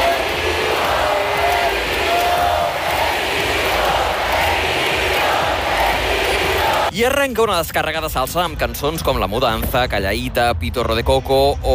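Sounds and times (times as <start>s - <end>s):
concert crowd screaming and cheering: 0.0s - 6.9s
speech: 7.0s - 11.7s.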